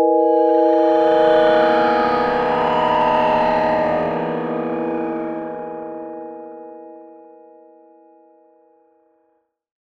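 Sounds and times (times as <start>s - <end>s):
synth pad: 0.1s - 6.9s.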